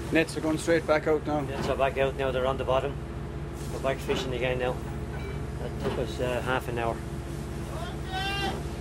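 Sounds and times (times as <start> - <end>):
speech: 0.1 - 3.1, 3.6 - 4.9, 5.6 - 7.1
crewman shouting from the stern of a boat: 7.7 - 8.7.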